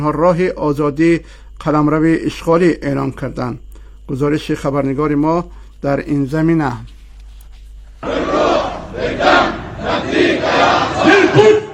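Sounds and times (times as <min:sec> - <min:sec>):
speech: 0:00.0 - 0:07.0, 0:08.0 - 0:08.4, 0:09.0 - 0:11.6
large rally crowd chanting shouted slogans in support: 0:08.0 - 0:11.7.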